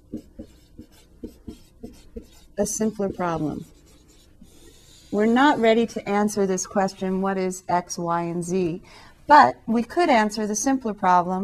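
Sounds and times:
writing on a board during a maths lecture: 0.0 - 5.8
speech: 2.6 - 3.7, 5.2 - 11.4.

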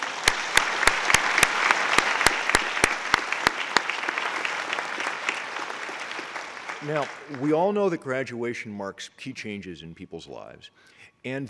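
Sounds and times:
audience applause: 0.0 - 7.8
speech: 6.8 - 11.4.

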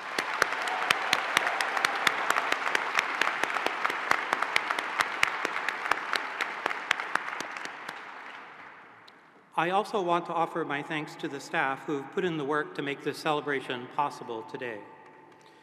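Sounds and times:
round of applause for graduates: 0.0 - 8.8
speech: 9.6 - 14.9.

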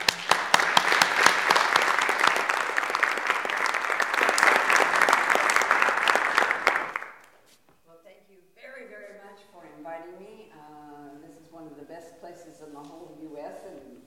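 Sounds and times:
audience applause welcoming a guest speaker at a lecture: 0.0 - 7.3.

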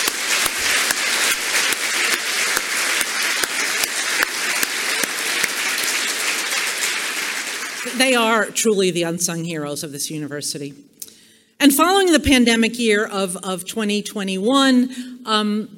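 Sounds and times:
round of applause: 0.0 - 8.2
speech: 8.0 - 11.0, 11.6 - 15.7.

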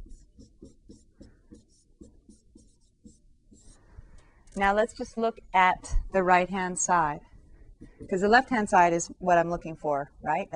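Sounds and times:
handwriting a calculus derivation: 0.0 - 3.8
speech: 4.6 - 7.3, 8.0 - 10.5.

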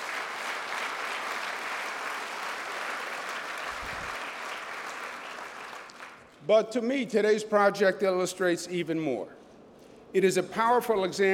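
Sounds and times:
audience applause: 0.0 - 6.2
speech: 6.4 - 9.4, 10.1 - 11.3.

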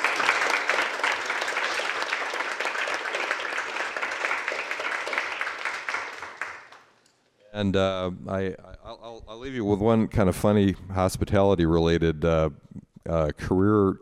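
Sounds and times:
audience round of applause: 0.0 - 6.9
speech: 7.6 - 8.7, 9.4 - 13.9.

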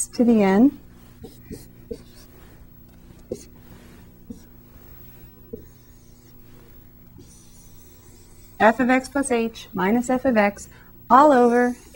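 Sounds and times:
speech: 0.0 - 2.1, 8.6 - 11.9
pen writing out a maths expansion: 0.9 - 9.1, 11.3 - 11.9.

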